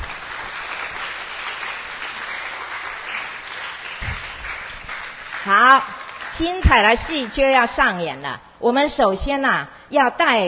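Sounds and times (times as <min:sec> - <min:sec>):
audience applause: 0:00.0 - 0:07.3
speech: 0:05.5 - 0:10.4.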